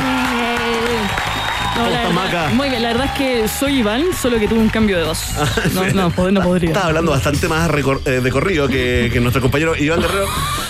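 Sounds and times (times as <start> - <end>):
audience applause: 0.0 - 5.1
speech: 1.8 - 10.6
laughter: 5.3 - 6.2, 9.9 - 10.6.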